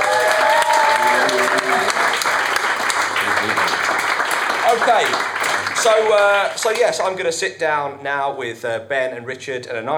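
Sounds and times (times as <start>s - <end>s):
audience cheer: 0.0s - 3.9s
audience round of applause: 0.0s - 7.1s
speech: 4.8s - 9.9s.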